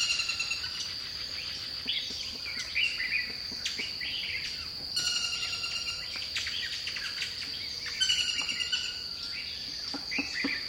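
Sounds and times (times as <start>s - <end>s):
bird song of warbled and slurred whistled phrases in dipterocarp forest: 0.0s - 10.6s.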